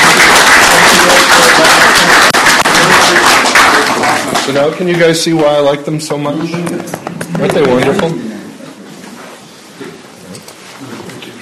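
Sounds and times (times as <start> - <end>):
audience applause: 0.0 - 4.8
speech: 4.5 - 8.4.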